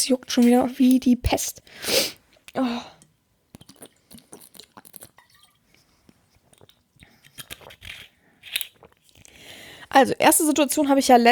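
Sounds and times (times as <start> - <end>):
speech: 0.0 - 3.0, 9.9 - 11.3
taking a sip of a drink with swallowing gulps: 2.3 - 9.4.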